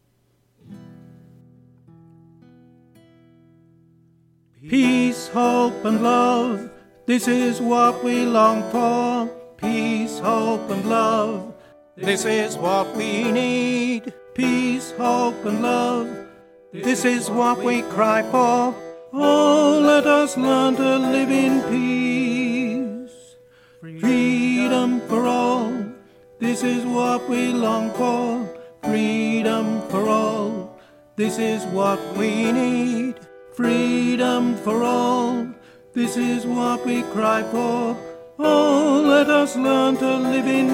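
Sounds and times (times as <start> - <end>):
tenor singing: 4.6 - 40.7.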